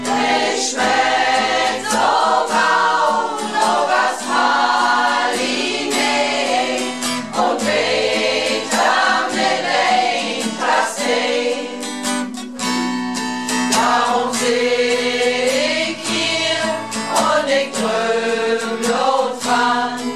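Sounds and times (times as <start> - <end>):
guitar: 0.0 - 20.1.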